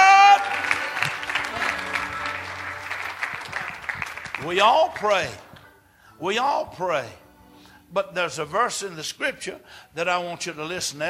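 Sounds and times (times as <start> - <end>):
audience clapping: 0.0 - 5.7
speech: 4.4 - 5.4, 6.2 - 7.2, 7.9 - 11.0.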